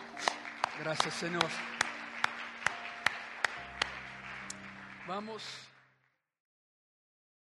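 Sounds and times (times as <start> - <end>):
audience applause: 0.0 - 6.0
speech: 0.8 - 1.8, 5.1 - 5.7.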